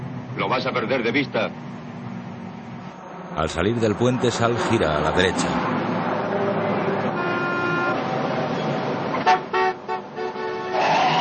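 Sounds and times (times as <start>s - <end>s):
steady rumble of stopped traffic: 0.0s - 11.2s
speech: 0.4s - 1.7s, 3.4s - 5.8s
car horns honking in a traffic jam: 6.3s - 11.2s.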